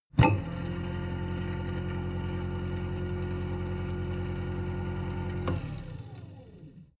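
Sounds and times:
garbage disposal: 0.1s - 5.6s.

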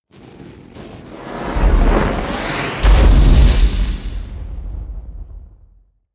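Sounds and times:
burst: 1.2s - 5.9s.

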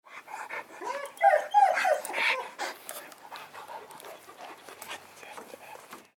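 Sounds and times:
dog sniffing and panting: 0.0s - 6.1s
dog whimpering: 0.8s - 2.6s.

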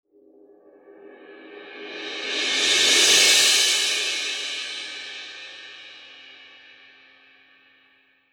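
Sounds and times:
cymbal: 0.8s - 7.9s.

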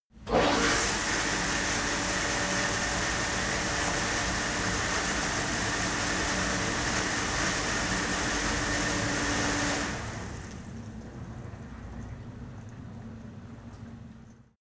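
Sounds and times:
cleaning machine starting, running and stopping: 0.3s - 10.7s.

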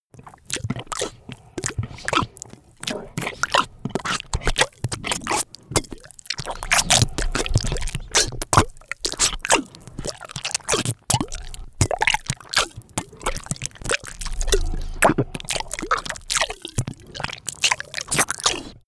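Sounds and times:
monster eating flesh: 0.2s - 18.8s.

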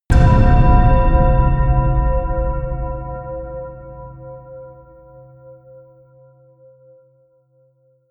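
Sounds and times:
bell punch: 0.1s - 5.4s.

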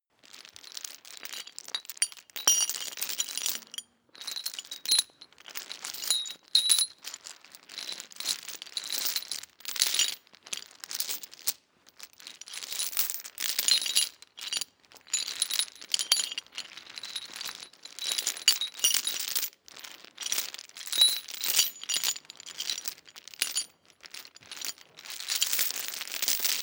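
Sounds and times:
metal chain moving: 0.5s - 10.1s, 12.2s - 19.5s, 20.4s - 26.6s.

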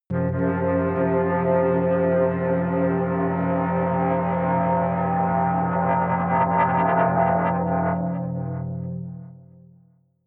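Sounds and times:
atmospheric feedback synthesizer drones: 0.1s - 9.5s.

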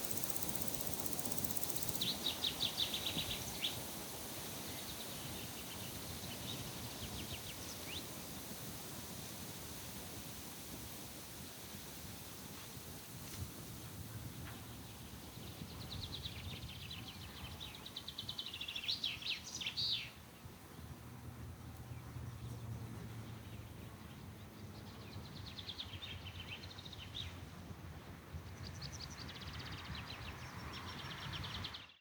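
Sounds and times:
insects buzzing: 0.0s - 13.8s
wind: 0.0s - 32.0s.

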